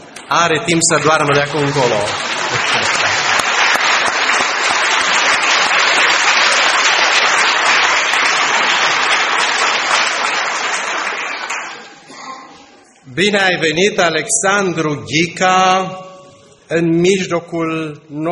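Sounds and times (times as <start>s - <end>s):
speech: 0.3s - 3.0s, 13.2s - 16.0s, 16.7s - 18.2s
audience applauding: 0.9s - 12.1s.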